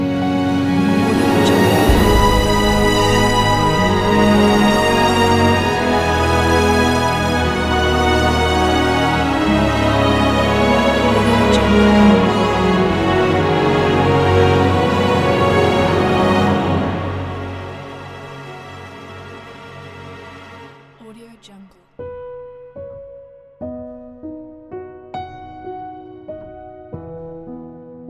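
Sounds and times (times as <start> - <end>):
cinematic music: 0.0 - 21.5.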